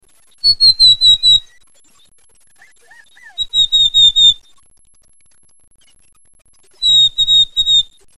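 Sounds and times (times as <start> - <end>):
chestnut-backed chickadee buzzy high notes: 0.4 - 1.5, 2.6 - 4.4, 6.7 - 7.9.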